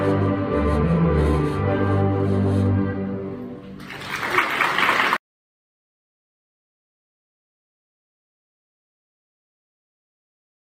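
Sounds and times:
string orchestra: 0.0 - 5.0.

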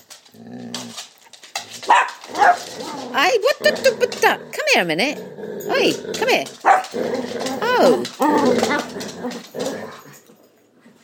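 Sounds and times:
dog whining bark: 1.9 - 2.6, 6.6 - 7.0
speech: 3.1 - 9.8.

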